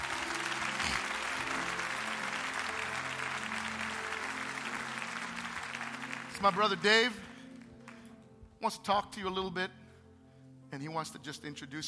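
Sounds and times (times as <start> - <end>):
audience hand clapping: 0.0 - 8.1
speech: 6.4 - 7.2, 8.6 - 9.7, 10.7 - 11.8.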